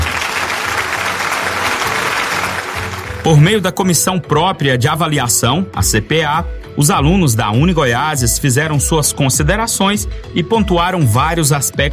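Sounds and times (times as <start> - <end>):
audience applause: 0.0 - 3.4
speech: 3.2 - 11.9.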